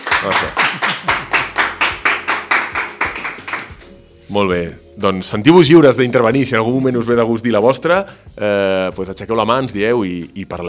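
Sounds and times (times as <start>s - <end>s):
audience applause: 0.0s - 3.8s
speech: 0.2s - 1.5s, 4.3s - 10.6s.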